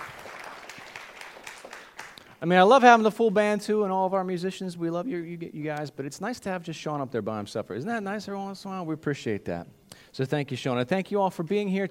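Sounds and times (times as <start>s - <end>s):
audience applause: 0.0s - 2.3s
speech: 2.4s - 11.8s.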